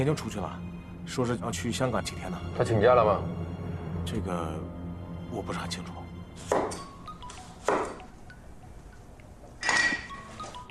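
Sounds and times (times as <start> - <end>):
speech: 0.0 - 3.4, 4.0 - 6.7
dishes and pans clinking in a kitchen: 9.6 - 10.5.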